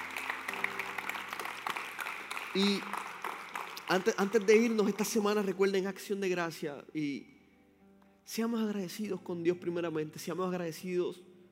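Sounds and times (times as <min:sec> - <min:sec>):
audience applauding: 0:00.0 - 0:05.6
speech: 0:02.6 - 0:03.0, 0:03.9 - 0:07.3, 0:08.3 - 0:11.3.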